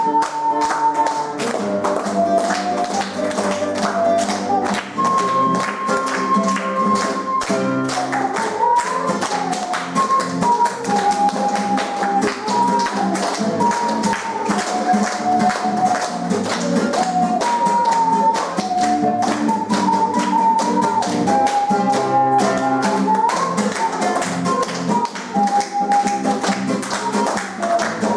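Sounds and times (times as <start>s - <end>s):
Italian-made round ocarina playing at a primary school music appreciation concert: 0.0s - 28.1s.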